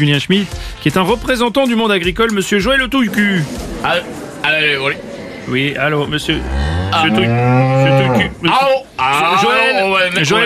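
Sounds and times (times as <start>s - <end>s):
speech: 0.0s - 10.4s
laughter: 2.6s - 8.4s
cow mooing at an agricultural show: 6.1s - 8.4s.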